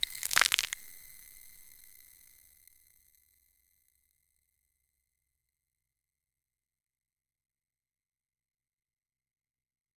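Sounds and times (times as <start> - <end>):
frozen lake ice cracking: 0.0 - 1.1.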